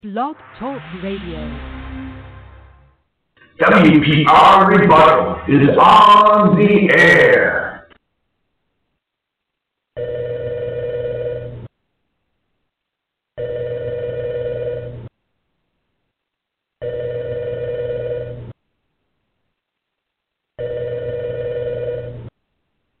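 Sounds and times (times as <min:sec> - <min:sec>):
speech: 0:00.0 - 0:01.8, 0:03.6 - 0:07.6
telephone bell ringing: 0:10.0 - 0:11.6, 0:13.4 - 0:15.0, 0:16.8 - 0:18.4, 0:20.6 - 0:22.3.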